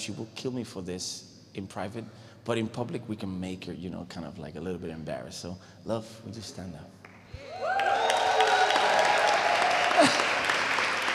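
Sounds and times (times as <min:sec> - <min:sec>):
speech: 0:00.0 - 0:07.0
audience applause: 0:07.4 - 0:11.1.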